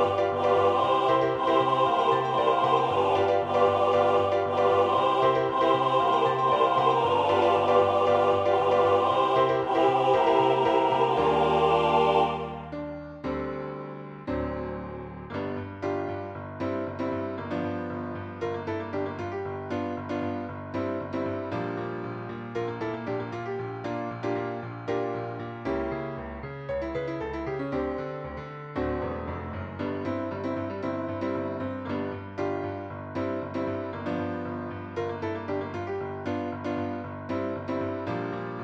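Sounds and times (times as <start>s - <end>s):
MIDI choir singing: 0.0s - 13.4s
MIDI piano: 0.0s - 38.6s.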